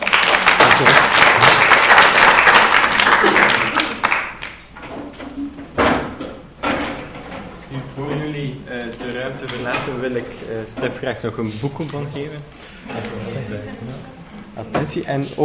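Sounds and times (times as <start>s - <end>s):
audience applause: 0.0s - 4.7s
speech: 0.8s - 1.2s, 10.0s - 15.4s
murmured voices: 7.7s - 15.4s.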